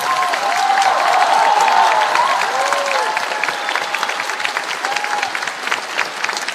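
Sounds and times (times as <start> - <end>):
thunderous concert hall applause: 0.0 - 6.5.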